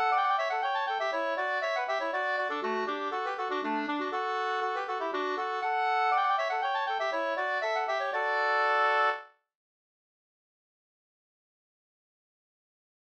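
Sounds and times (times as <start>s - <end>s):
polska dance tune: 0.0s - 9.2s.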